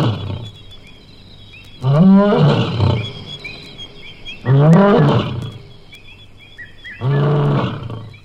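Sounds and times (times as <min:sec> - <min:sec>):
animal low harmonic moaning cries: 0:01.8 - 0:05.9, 0:06.8 - 0:08.2.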